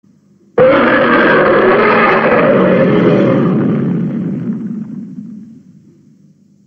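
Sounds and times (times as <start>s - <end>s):
roar: 0.6s - 5.6s.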